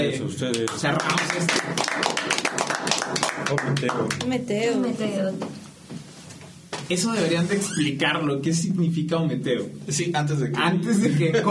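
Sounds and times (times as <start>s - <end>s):
speech: 0.0s - 5.7s, 6.9s - 11.4s
applause: 0.5s - 4.3s
laughter: 10.7s - 11.4s.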